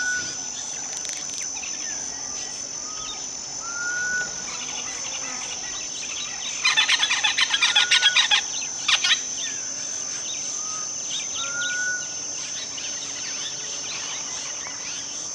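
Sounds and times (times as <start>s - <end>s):
birds whistling and chirping in West Africa: 0.0s - 0.4s, 2.8s - 4.9s, 5.6s - 12.7s.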